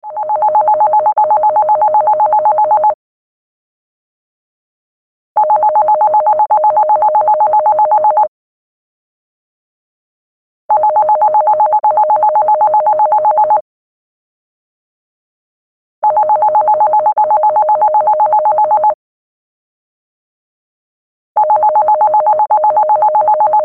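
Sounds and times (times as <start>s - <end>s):
landline phone ringtone: 0.0s - 3.0s, 5.4s - 8.3s, 10.7s - 13.6s, 16.0s - 19.0s, 21.4s - 23.6s.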